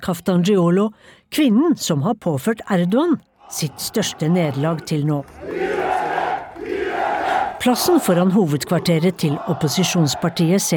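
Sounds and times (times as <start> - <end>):
speech: 0.0 - 6.0, 7.6 - 10.7
large crowd chanting slogans in unison: 3.3 - 10.7.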